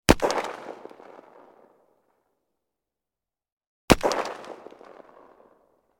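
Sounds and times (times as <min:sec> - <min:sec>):
Arisaka rifle gunshot: 0:00.1 - 0:01.4, 0:03.9 - 0:05.5.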